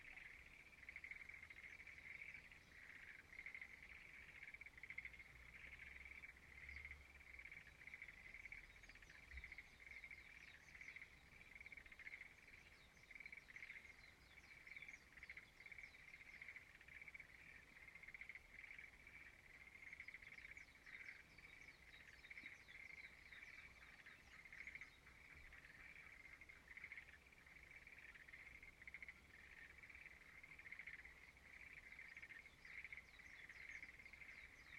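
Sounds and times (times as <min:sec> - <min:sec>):
frog chorus: 0:00.0 - 0:34.7.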